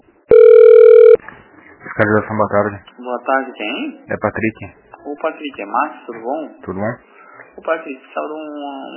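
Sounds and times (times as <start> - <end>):
brief steady telephone line tone: 0.3 - 1.2
telephone line audio during a call transfer: 0.3 - 1.2
speech: 3.2 - 8.9.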